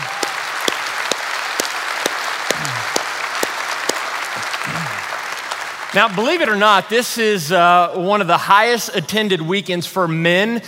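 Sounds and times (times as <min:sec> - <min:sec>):
audience applause: 0:00.0 - 0:06.9
speech: 0:06.0 - 0:10.6.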